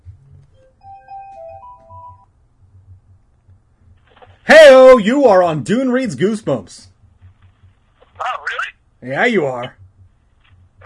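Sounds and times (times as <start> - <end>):
phone ringing: 0.8 - 2.3
speech: 5.0 - 6.9, 9.0 - 9.8.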